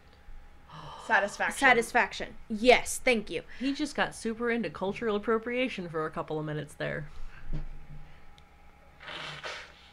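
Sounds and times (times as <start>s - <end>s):
speech: 1.1s - 7.7s
person blowing nose: 9.0s - 9.9s.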